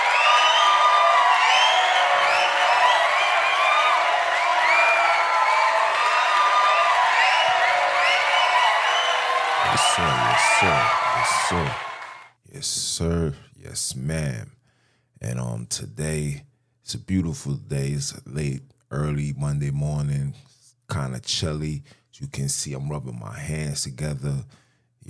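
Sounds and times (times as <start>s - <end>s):
clapping bursts: 0.0s - 12.3s
large crowd cheering and whooping: 0.0s - 12.3s
speech: 13.0s - 14.6s, 15.7s - 25.0s.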